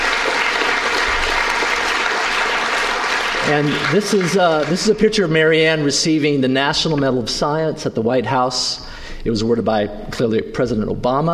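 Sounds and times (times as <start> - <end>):
audience applause: 0.0 - 5.4
speech: 3.5 - 11.3.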